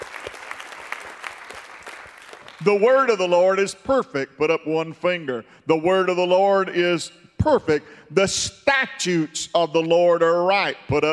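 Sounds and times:
audience applause, hand clapping: 0.0 - 2.6
speech: 2.6 - 11.1.

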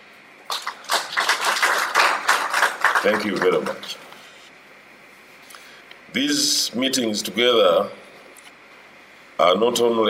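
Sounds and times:
audience applause at a council of ministers meeting: 0.5 - 4.0
speech: 3.0 - 4.0, 6.1 - 8.0, 9.4 - 10.0.

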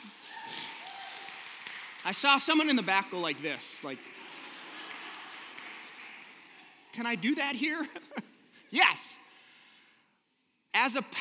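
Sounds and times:
audience applause: 0.0 - 7.6
whoop or cheer: 0.1 - 1.4
speech: 2.0 - 4.2, 7.0 - 9.1, 10.8 - 11.1
laughter: 2.2 - 8.8.

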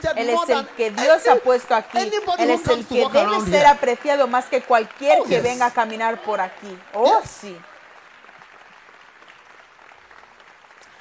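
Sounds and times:
speech: 0.0 - 7.7
audience clapping: 0.0 - 11.0.

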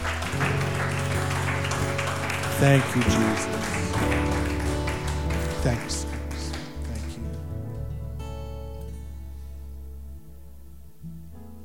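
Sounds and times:
audience clapping: 0.0 - 7.7
speech: 2.6 - 4.6, 5.6 - 6.2.

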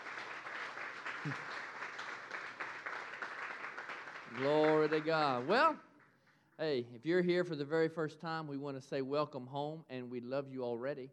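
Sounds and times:
audience clapping hands: 0.0 - 6.6
speech: 1.2 - 1.5, 4.3 - 5.9, 6.6 - 11.1.

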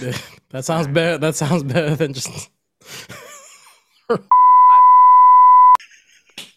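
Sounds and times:
speech: 0.0 - 3.2, 4.1 - 4.5
censor bleep: 4.3 - 5.8.

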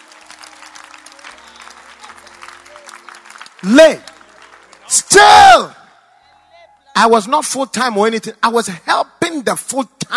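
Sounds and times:
audience applause: 0.0 - 5.1
speech: 3.6 - 4.1, 4.9 - 5.8, 7.0 - 10.1.

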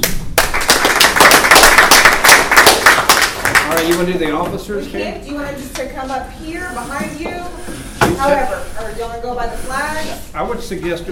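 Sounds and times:
round of applause: 0.0 - 4.1
speech: 4.0 - 7.6, 8.2 - 11.1.

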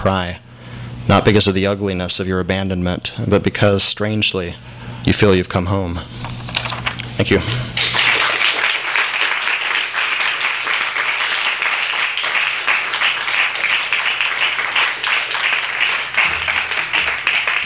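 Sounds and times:
speech: 0.0 - 0.4, 1.0 - 7.7
audience applause after a reading: 7.8 - 17.6.

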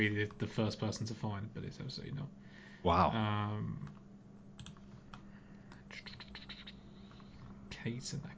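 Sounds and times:
speech: 0.0 - 4.0, 7.8 - 8.3
low steady hum: 0.0 - 8.3
typing on a computer keyboard: 4.6 - 4.8.

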